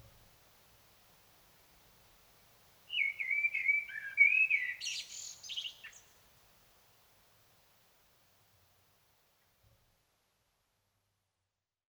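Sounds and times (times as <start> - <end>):
Common blackbird singing: 2.9 - 6.1.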